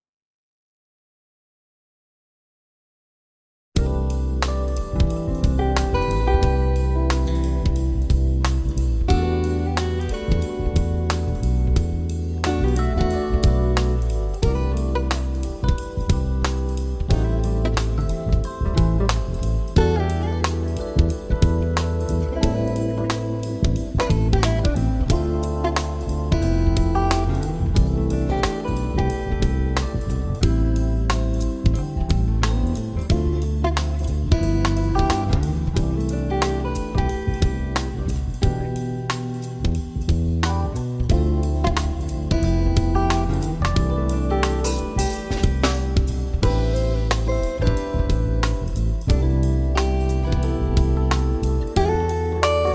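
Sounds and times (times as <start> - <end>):
instrumental music: 3.8 - 52.7.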